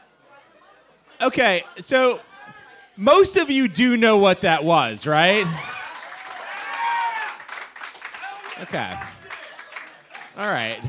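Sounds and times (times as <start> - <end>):
speech: 1.2 - 2.3, 3.0 - 5.7, 8.6 - 9.2, 10.4 - 10.8
audience clapping: 5.4 - 10.8.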